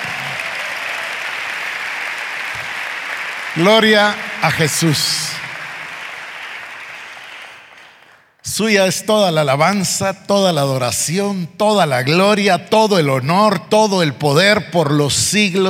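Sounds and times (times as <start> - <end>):
loud audience applause: 0.0 - 8.3
speech: 3.6 - 5.4, 8.6 - 15.6.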